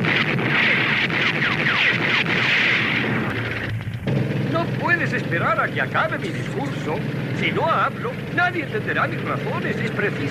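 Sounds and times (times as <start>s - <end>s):
heavy gunfire after an order to fire in a drama: 0.0s - 6.2s
speech: 5.1s - 10.2s.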